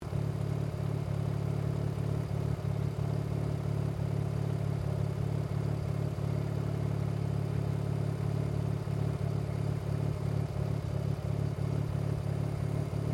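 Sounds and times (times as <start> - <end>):
Mazda RX7 Series 3 engine idling at the bonnet: 0.0 - 13.1.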